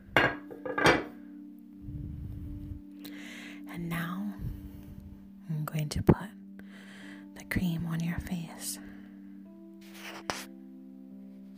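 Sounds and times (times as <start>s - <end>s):
bowl being put down: 0.2s - 1.1s
speech: 3.8s - 4.4s, 5.6s - 6.4s, 7.6s - 8.9s.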